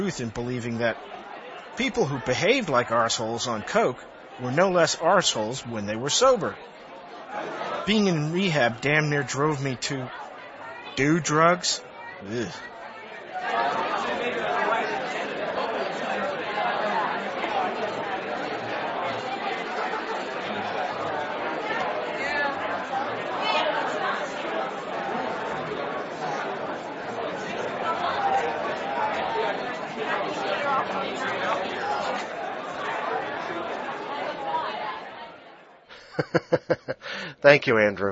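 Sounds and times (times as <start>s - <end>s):
speech: 0.0s - 10.2s, 11.0s - 12.7s, 36.3s - 38.1s
crowd chatter: 0.0s - 38.1s
laughter: 35.9s - 37.4s.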